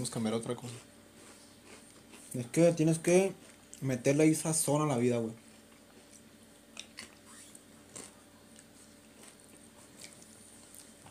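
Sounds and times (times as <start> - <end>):
speech: 0.0 - 1.0, 2.3 - 5.4
people chewing and biting while eating: 0.6 - 2.6, 5.4 - 11.1.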